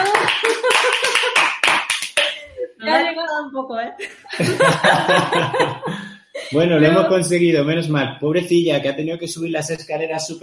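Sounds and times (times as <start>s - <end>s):
laughter: 0.0s - 1.7s, 4.0s - 7.3s
applause: 0.0s - 2.4s
speech: 3.6s - 5.9s, 6.5s - 10.4s.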